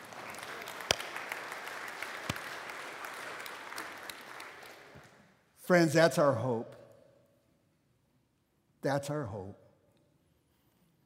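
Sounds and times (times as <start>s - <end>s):
audience clapping: 0.0s - 5.4s
speech: 5.7s - 6.8s, 8.8s - 9.6s.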